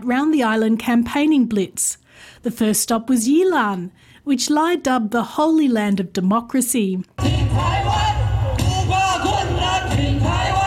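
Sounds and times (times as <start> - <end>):
speech: 0.0 - 8.2
low thumping rhythmic backing: 7.2 - 10.6
rally crowd cheering wildly with yells and whoops: 7.2 - 10.6.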